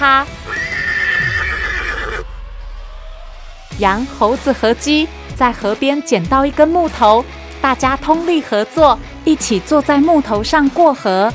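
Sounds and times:
speech: 0:00.0 - 0:00.4, 0:03.8 - 0:11.3
horse whinnying: 0:00.3 - 0:02.3
low rumble: 0:02.1 - 0:05.5.

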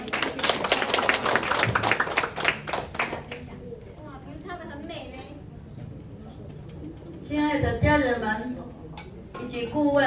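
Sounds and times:
audience applause: 0:00.0 - 0:03.4
speech: 0:07.6 - 0:08.5, 0:09.6 - 0:10.0.

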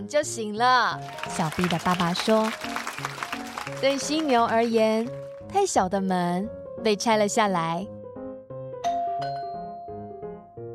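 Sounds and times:
speech: 0:00.0 - 0:03.2, 0:03.8 - 0:08.0
doorbell chiming a short tune: 0:08.8 - 0:10.2.

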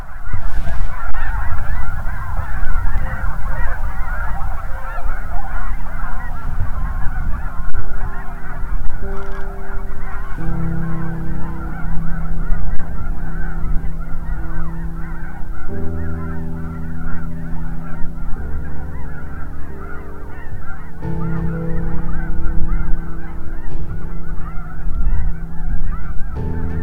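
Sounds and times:
goose flock honking: 0:00.0 - 0:26.8
low rumble: 0:00.0 - 0:26.8
steady humming tones: 0:00.0 - 0:26.8.

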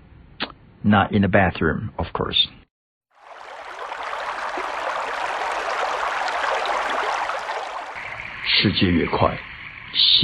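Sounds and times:
speech: 0:00.8 - 0:02.6, 0:08.6 - 0:10.2
flowing stream or brook: 0:03.1 - 0:08.4.

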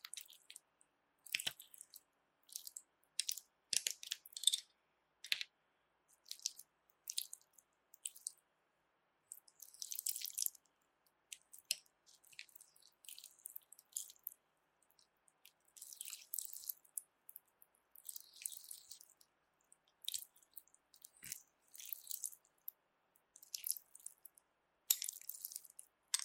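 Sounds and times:
slippery jelly squished and handled: 0:00.0 - 0:00.6, 0:01.2 - 0:04.6, 0:06.2 - 0:08.4, 0:09.3 - 0:10.6, 0:11.3 - 0:14.3, 0:14.9 - 0:17.0, 0:17.9 - 0:19.2, 0:20.0 - 0:22.4, 0:23.4 - 0:24.3, 0:24.9 - 0:26.2.

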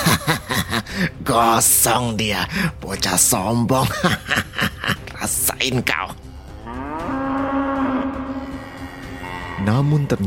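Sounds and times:
laughter: 0:00.0 - 0:01.0, 0:03.8 - 0:05.5
speech: 0:01.0 - 0:04.4, 0:05.6 - 0:06.0, 0:09.7 - 0:10.2
bull bellowing: 0:06.2 - 0:10.1.

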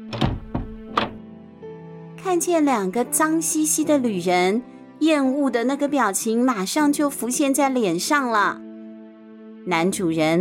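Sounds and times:
door opening: 0:00.0 - 0:01.2
speech: 0:02.2 - 0:08.6, 0:09.6 - 0:10.3.

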